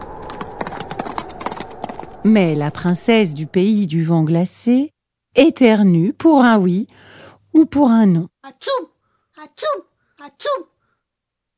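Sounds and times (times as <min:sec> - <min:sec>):
horse galloping: 0:00.0 - 0:03.5
speech: 0:02.2 - 0:10.7.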